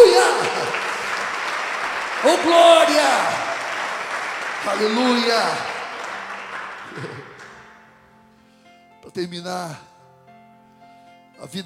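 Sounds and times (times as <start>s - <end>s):
laughter: 0.0s - 7.6s
audience applauding: 0.0s - 8.0s
speech: 2.2s - 3.4s, 4.6s - 5.7s, 7.0s - 7.2s, 9.2s - 9.9s, 11.4s - 11.6s.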